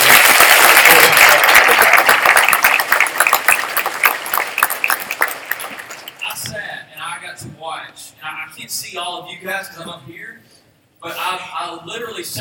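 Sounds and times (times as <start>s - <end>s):
audience applause for a choir: 0.0s - 6.2s
speech: 9.2s - 12.3s.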